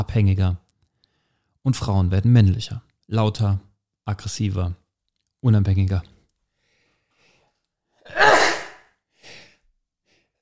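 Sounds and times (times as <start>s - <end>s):
speech: 0.0s - 0.6s, 1.6s - 4.8s, 5.4s - 6.2s
person sneezing: 8.1s - 9.5s.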